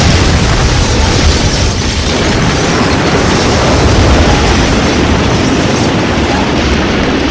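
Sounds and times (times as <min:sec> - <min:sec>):
crackling debris: 0:00.0 - 0:07.2
heavy explosions from a missile volley: 0:00.0 - 0:07.2.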